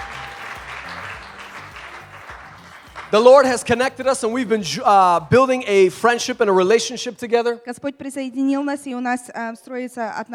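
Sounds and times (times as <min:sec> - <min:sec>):
crowd applause: 0:00.0 - 0:04.6
speech: 0:03.1 - 0:10.3.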